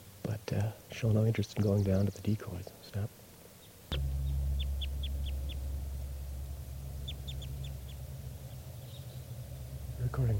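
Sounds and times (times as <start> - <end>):
speech: 0.5 - 3.2
type 2 crossbill kip calls: 3.5 - 10.3
low rumble: 3.9 - 10.3.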